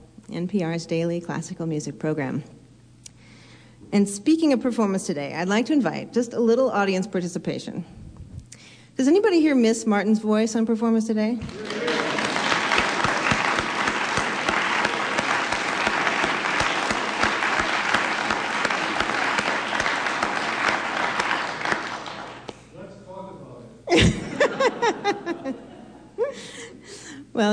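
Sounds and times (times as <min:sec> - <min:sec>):
speech: 0:00.3 - 0:02.6, 0:03.9 - 0:08.0, 0:09.0 - 0:11.8
large audience clapping: 0:11.4 - 0:22.6
laughter: 0:11.5 - 0:22.1, 0:23.9 - 0:26.8.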